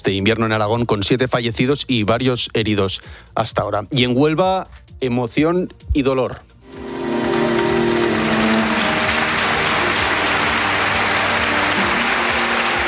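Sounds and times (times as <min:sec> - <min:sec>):
speech: 0:00.1 - 0:06.8
sustained applause from a large crowd at a funeral: 0:06.7 - 0:12.8.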